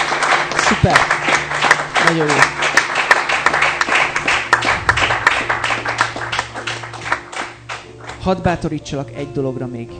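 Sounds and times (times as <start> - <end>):
audience applause: 0.0 - 8.2
speech: 0.7 - 1.2, 2.0 - 2.5, 8.2 - 9.9.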